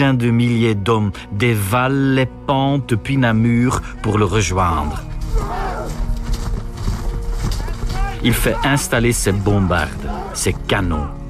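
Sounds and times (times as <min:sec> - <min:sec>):
speech: 0:00.0 - 0:05.6, 0:08.2 - 0:11.2
galloping horses of a cavalry charge: 0:04.6 - 0:10.4.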